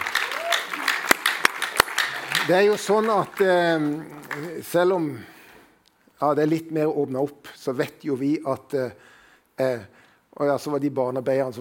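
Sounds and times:
applause: 0.0s - 4.8s
speech: 2.5s - 5.3s, 6.2s - 11.5s.

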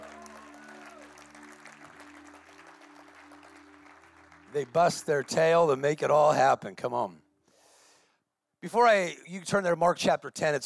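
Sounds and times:
large audience applauding: 0.0s - 5.8s
speech: 4.6s - 7.2s, 8.6s - 10.6s.

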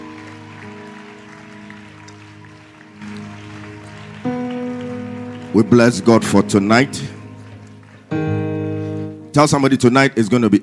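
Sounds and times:
audience clapping: 0.0s - 9.1s
speech: 5.5s - 7.2s, 9.3s - 10.6s.

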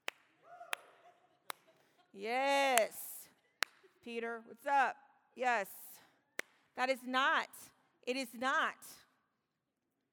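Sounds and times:
polite golf clap: 0.0s - 1.7s
speech: 2.2s - 3.0s, 4.0s - 5.9s, 6.8s - 9.0s.

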